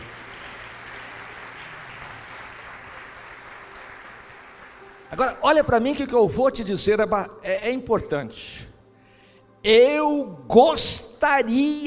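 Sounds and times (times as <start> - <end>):
audience applause: 0.0 - 5.1
speech: 5.1 - 8.7, 9.6 - 11.8.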